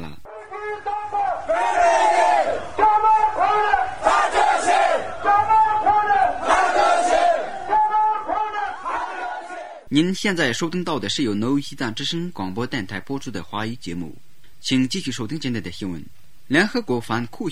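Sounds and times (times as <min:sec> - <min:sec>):
protesters on a Tibet march chanting slogans in unison: 0:00.3 - 0:09.9
speech: 0:10.0 - 0:17.5.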